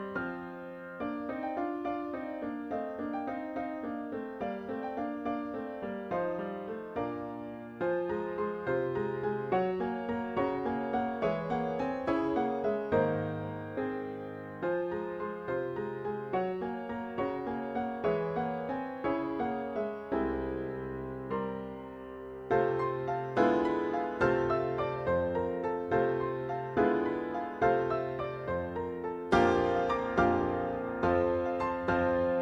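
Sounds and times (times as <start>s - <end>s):
piano trio playing: 0.0s - 32.4s.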